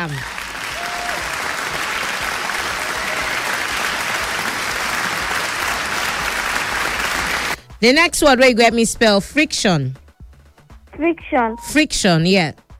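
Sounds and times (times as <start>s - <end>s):
speech: 0.0s - 0.4s, 7.8s - 10.0s, 11.0s - 12.7s
audience applauding: 0.0s - 7.6s.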